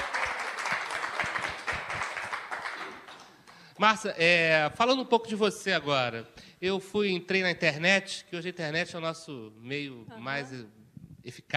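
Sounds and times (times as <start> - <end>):
audience applause: 0.0 - 3.6
speech: 3.8 - 11.5.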